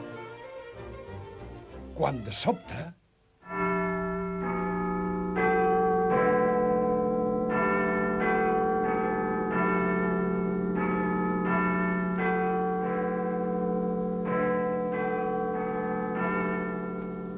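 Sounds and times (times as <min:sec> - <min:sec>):
speech: 0:02.1 - 0:03.0
clock bell striking twelve: 0:03.5 - 0:17.3.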